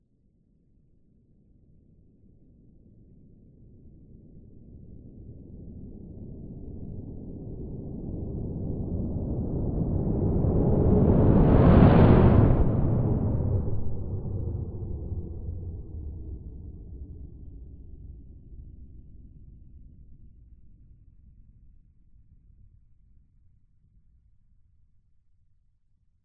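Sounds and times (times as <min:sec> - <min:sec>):
science fiction mothership spaceship passing by: 0:09.8 - 0:15.5.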